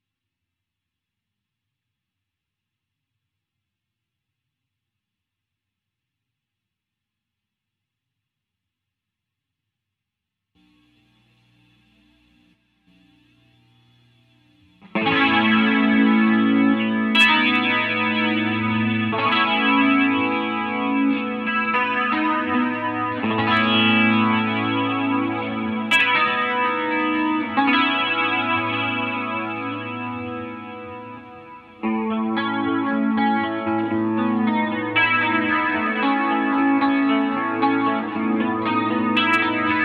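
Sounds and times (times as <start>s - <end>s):
guitar: 10.6s - 39.8s.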